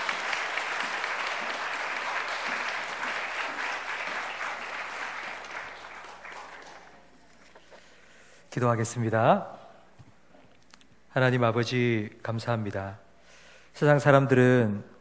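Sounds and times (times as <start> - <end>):
audience applause: 0.0 - 7.2
speech: 8.5 - 9.6, 11.2 - 13.0, 13.8 - 14.9.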